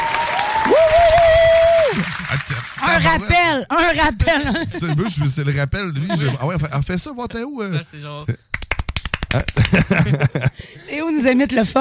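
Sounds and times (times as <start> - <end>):
applauding crowd clapping sound effect: 0.0 - 3.4, 8.5 - 10.2
speech: 3.1 - 8.5, 9.3 - 11.7
laughter: 4.3 - 6.7, 9.3 - 10.7.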